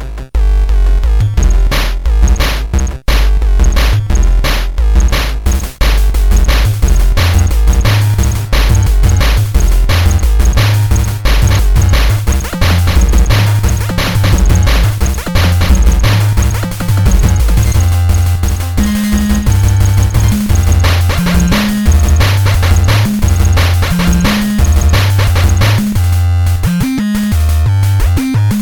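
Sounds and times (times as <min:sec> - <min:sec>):
gameboy drum and bass: 0:00.5 - 0:28.6.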